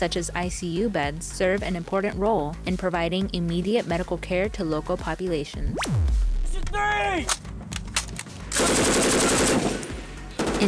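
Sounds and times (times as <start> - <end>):
speech: 0.0 - 7.5
gunfire on a U.S. Marines live-fire range in Japan: 5.8 - 10.6
automatic gunfire on a U.S. Marines live-fire range in Japan: 8.5 - 10.6.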